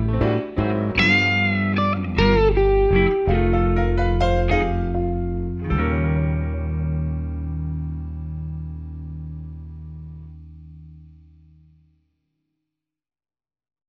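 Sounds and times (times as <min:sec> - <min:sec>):
blues guitar medley: 0:00.0 - 0:11.0.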